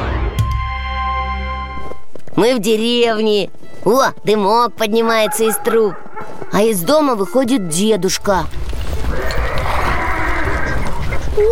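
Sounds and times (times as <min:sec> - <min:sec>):
hooves clopping: 0:00.5 - 0:11.5
speech: 0:02.4 - 0:08.6
horses neighing: 0:05.1 - 0:06.7, 0:08.8 - 0:11.5.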